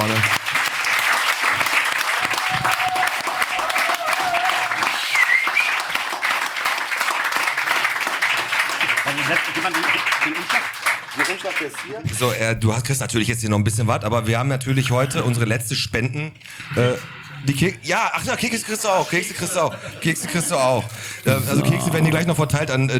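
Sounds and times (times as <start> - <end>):
crowd applauding: 0.0 - 12.1
brief whistles: 4.7 - 6.1
speech: 11.6 - 22.9
laughter: 18.2 - 22.9.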